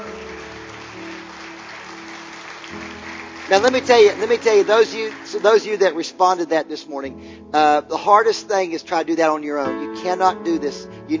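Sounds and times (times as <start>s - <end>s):
audience clapping: 0.0s - 6.1s
speech: 3.5s - 11.1s.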